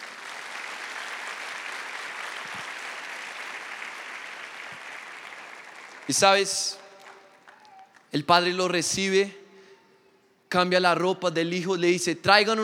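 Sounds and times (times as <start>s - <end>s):
crowd applause: 0.0s - 8.1s
speech: 6.1s - 6.8s, 8.1s - 9.4s, 10.5s - 12.6s.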